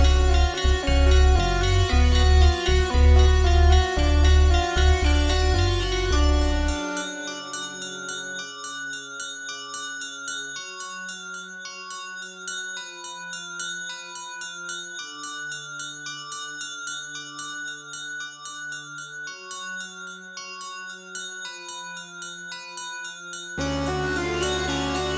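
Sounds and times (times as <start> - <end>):
instrumental music: 0.0 - 9.3, 23.6 - 25.1.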